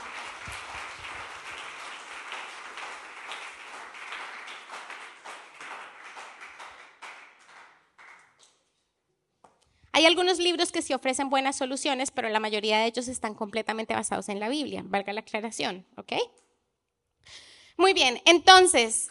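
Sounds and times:
applause: 0.0 - 8.6
speech: 10.0 - 16.5, 17.2 - 19.0.

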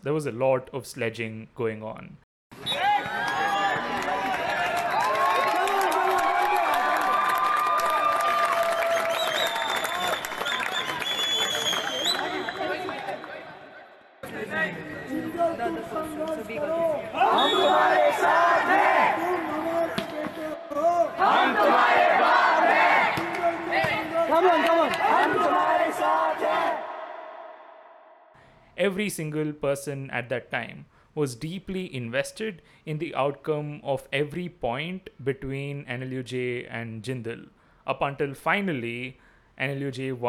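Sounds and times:
speech: 0.0 - 2.2, 28.8 - 40.2
supporters cheering around a court: 2.5 - 28.2.

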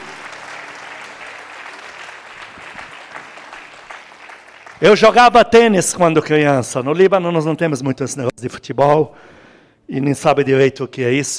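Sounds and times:
audience applause: 0.0 - 5.0
speech: 4.8 - 11.3.

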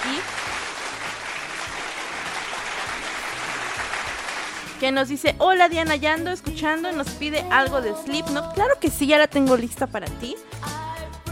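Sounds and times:
applause: 0.0 - 4.8
speech: 4.8 - 10.8.

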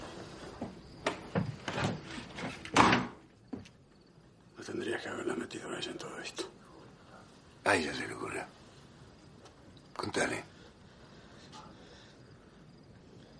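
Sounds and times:
house door closing thud: 1.0 - 3.2
speech: 4.8 - 6.6, 7.7 - 8.6, 10.1 - 10.5.

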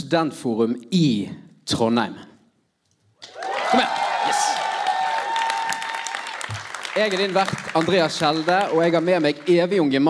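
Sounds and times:
speech: 0.1 - 2.3, 3.7 - 4.6, 7.0 - 10.0
live audience applause: 3.3 - 10.0.

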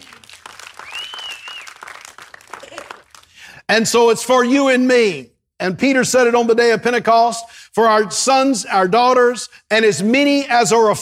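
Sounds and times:
audience clapping hands: 0.0 - 3.6
high whistle-like cry: 0.8 - 1.8
speech: 3.7 - 11.0.

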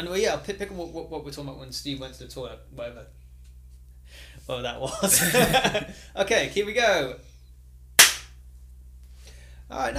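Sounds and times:
speech: 0.0 - 3.2, 4.1 - 7.3, 9.7 - 9.9
laughter: 4.9 - 5.9
single hand clap for audio sync: 8.0 - 8.3.

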